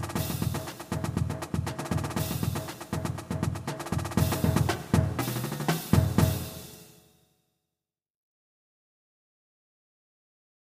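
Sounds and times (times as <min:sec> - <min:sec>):
Jersey club beat: 0:00.0 - 0:06.8.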